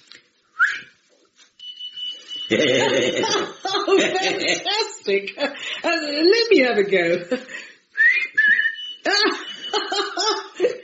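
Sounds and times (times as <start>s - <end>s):
short whistle: 0.6s - 1.0s
laughter: 2.5s - 5.6s, 9.1s - 10.8s
speech: 2.5s - 7.7s.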